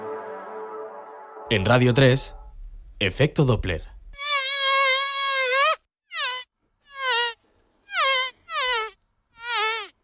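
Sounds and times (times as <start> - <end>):
speech: 1.5 - 2.4, 3.0 - 3.9
nasal fly-like buzzing: 4.1 - 10.0.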